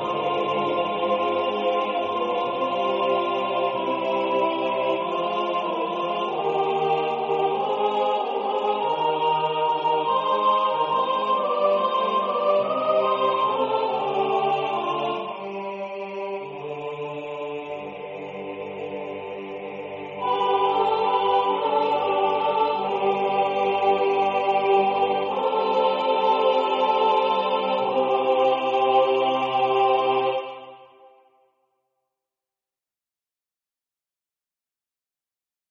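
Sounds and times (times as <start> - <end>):
soprano singing: 0.0 - 15.6, 20.2 - 31.1
choir singing: 0.0 - 31.4.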